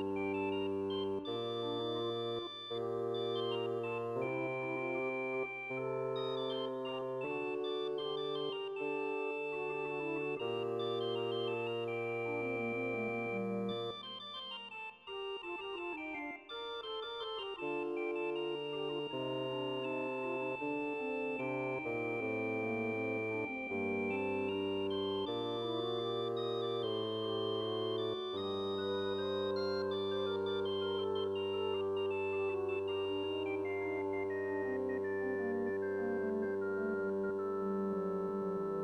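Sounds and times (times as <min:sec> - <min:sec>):
bassoon: 0:00.0 - 0:14.2, 0:15.2 - 0:38.8
organ: 0:00.0 - 0:38.8.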